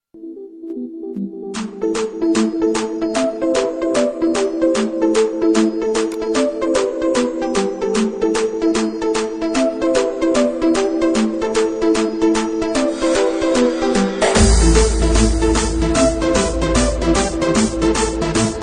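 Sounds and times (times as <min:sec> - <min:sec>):
trance music: 0:00.2 - 0:18.6.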